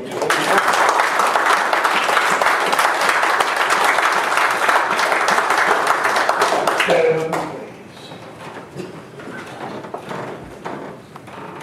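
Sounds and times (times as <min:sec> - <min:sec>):
audience applause: 0:00.0 - 0:08.8.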